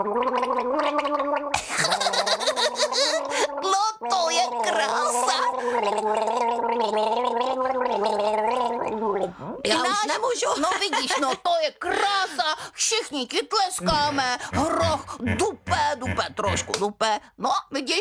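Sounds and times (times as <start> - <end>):
speech: 0.0 - 1.1, 10.0 - 17.9
person singing with water in the mouth, gargling: 0.0 - 9.8, 13.8 - 16.8.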